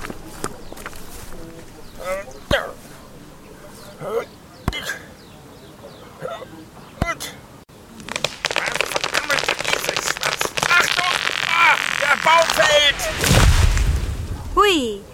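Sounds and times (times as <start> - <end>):
voices: 0.0 - 13.2
tree splintering and crashing down as it falls: 8.0 - 14.4.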